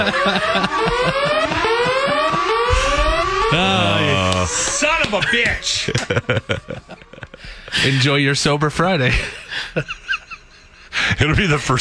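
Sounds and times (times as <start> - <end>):
speech: 0.0 - 2.4, 3.5 - 10.0, 11.0 - 11.8
alarm siren wailing: 0.0 - 7.4
laughter: 0.0 - 8.2, 9.0 - 11.5.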